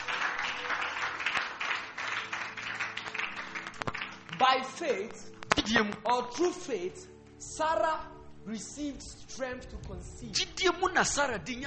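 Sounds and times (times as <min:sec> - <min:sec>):
audience clapping: 0:00.0 - 0:05.6
speech: 0:04.4 - 0:11.6.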